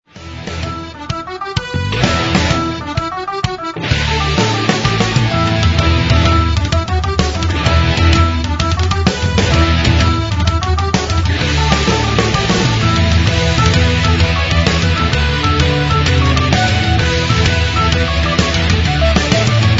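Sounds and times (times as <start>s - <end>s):
Irish rock music: 0.0s - 19.7s.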